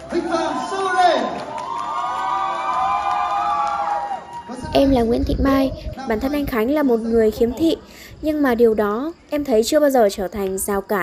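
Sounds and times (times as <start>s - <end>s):
crowd cheering and shouting to welcome a champion: 0.0s - 4.8s
speech: 4.8s - 11.0s.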